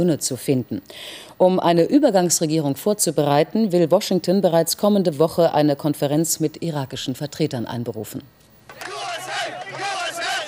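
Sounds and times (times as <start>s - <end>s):
speech: 0.0s - 8.4s
crowd cheering in the streets of Dearborn, Michigan: 8.7s - 10.4s.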